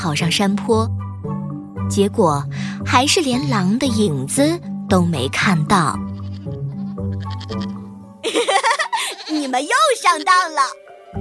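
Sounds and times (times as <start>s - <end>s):
speech: 0.0s - 1.0s, 1.9s - 6.1s, 8.3s - 8.6s, 9.3s - 11.1s
lamb bleating: 3.1s - 3.8s, 5.9s - 7.8s
laughter: 8.2s - 9.6s.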